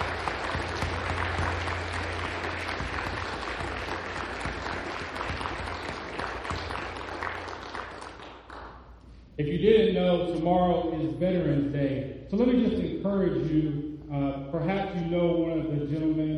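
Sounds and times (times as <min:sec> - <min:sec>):
large crowd applauding: 0:00.0 - 0:08.8
speech: 0:09.4 - 0:16.3.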